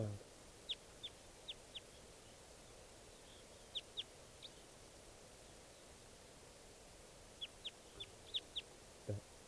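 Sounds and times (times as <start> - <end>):
wild bird calling: 0.6 - 4.8, 7.3 - 8.8.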